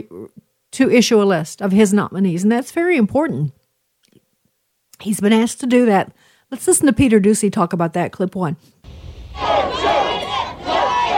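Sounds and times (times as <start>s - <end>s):
speech: 0.0s - 3.6s, 5.0s - 9.7s
crowd of political supporters shouting and jeering: 9.3s - 11.1s.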